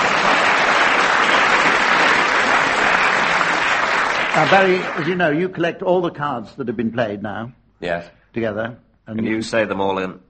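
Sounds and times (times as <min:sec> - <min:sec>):
audience applause: 0:00.0 - 0:05.5
speech: 0:04.4 - 0:10.2.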